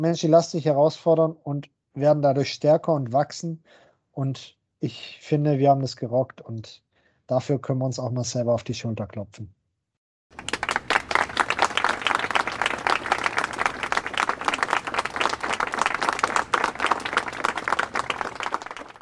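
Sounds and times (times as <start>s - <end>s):
speech: 0.0s - 9.6s
applause: 10.3s - 18.9s.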